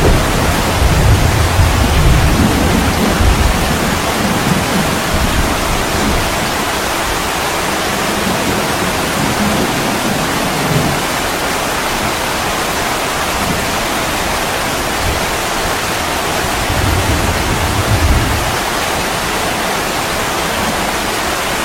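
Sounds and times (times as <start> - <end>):
soft thunder rumbling: 0.0 - 11.5, 15.0 - 19.2
heavy rain on a roof at midnight: 0.0 - 21.6.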